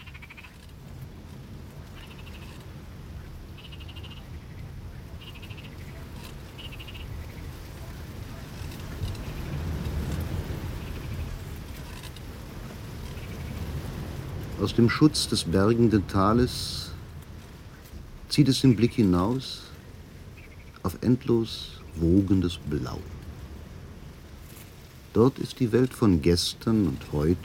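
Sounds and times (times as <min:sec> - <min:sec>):
frogs croaking: 0:00.0 - 0:17.0, 0:17.6 - 0:23.1
surf: 0:00.0 - 0:27.4
speech: 0:14.6 - 0:16.8, 0:18.4 - 0:19.7, 0:21.0 - 0:23.2, 0:25.2 - 0:27.4.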